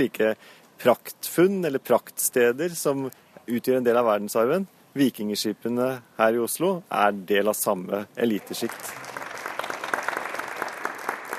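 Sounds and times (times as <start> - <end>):
speech: 0.0 - 9.1
audience applause: 8.3 - 11.3.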